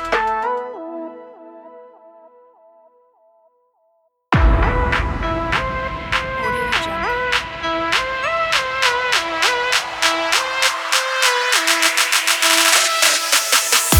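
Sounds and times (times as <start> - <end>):
trap beat: 4.4 - 13.9.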